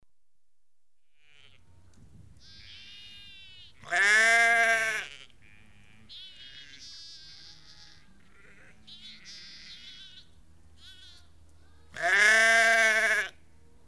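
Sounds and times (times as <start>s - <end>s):
flock of ewes and lambs bleating: 1.2s - 1.6s, 2.4s - 11.3s, 11.9s - 13.4s.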